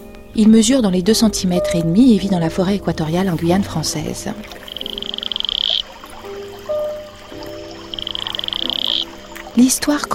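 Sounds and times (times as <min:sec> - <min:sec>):
speech: 0:00.4 - 0:04.6, 0:09.6 - 0:10.1
Atelopus franciscus toad trilling: 0:04.5 - 0:09.6.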